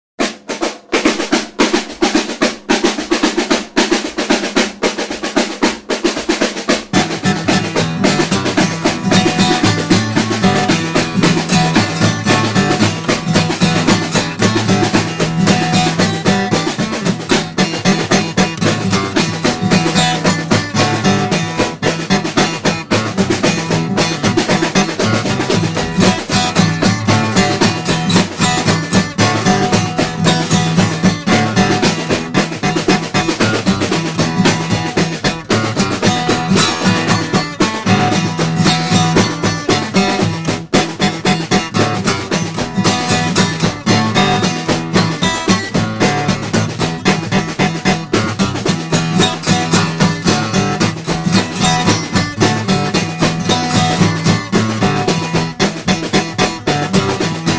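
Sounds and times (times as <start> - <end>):
instrumental music: 0.2 - 57.5.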